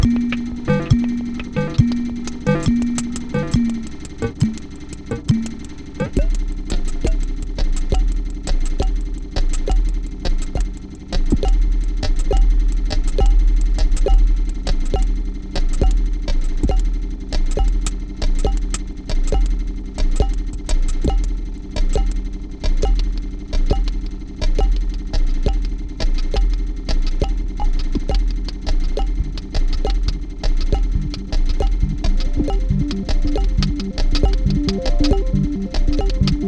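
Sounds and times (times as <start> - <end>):
analog synthesizer keys: 0.0 - 6.3, 30.8 - 36.4
synthesizer kick drum: 0.0 - 36.4.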